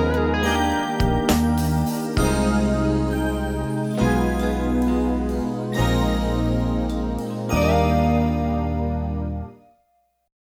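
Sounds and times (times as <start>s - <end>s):
percussion playing a triplet study: 0.0s - 9.4s.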